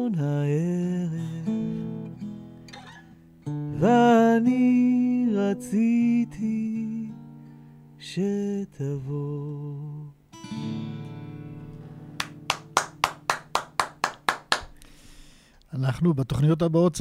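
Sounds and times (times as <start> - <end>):
speech: 0.0 - 1.5, 3.8 - 6.8, 8.0 - 9.9, 15.8 - 16.9
one person clapping hands: 12.2 - 14.9.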